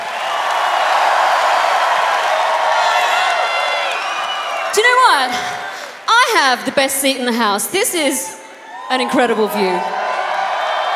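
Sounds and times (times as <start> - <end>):
audience applause and cheering: 0.0 - 6.1, 8.6 - 10.9
speech: 4.8 - 5.6, 6.3 - 10.0.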